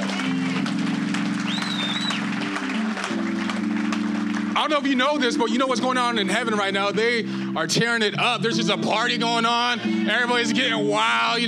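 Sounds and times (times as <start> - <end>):
audience clapping: 0.0 - 5.8
sustained low keyboard chords: 0.0 - 11.4
high whistle: 1.4 - 2.4
speech: 4.6 - 11.4.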